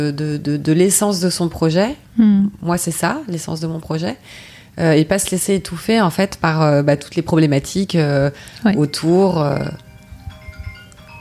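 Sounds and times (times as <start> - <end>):
speech: 0.0 - 9.9
mobile phone buzzing: 9.9 - 11.1.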